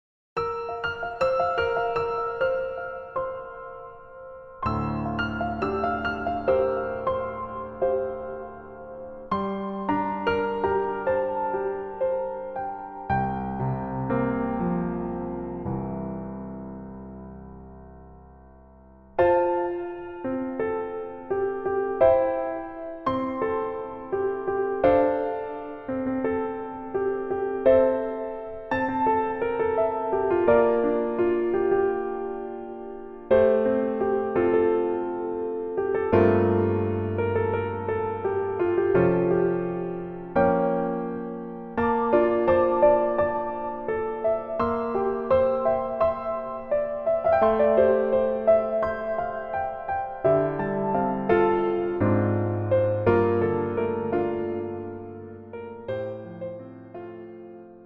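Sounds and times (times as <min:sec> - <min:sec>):
piano melody backing track: 0:00.4 - 0:57.8.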